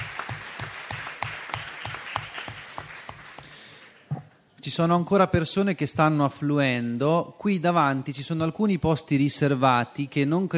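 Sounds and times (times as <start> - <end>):
audience applause: 0.0 - 4.1
speech: 4.6 - 10.5.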